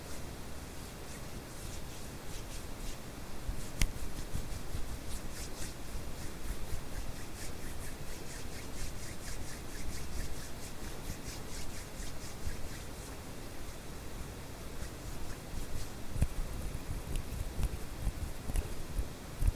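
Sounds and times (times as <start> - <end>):
hands rubbing and brushing: 0.0 - 19.5
white noise: 0.0 - 19.5.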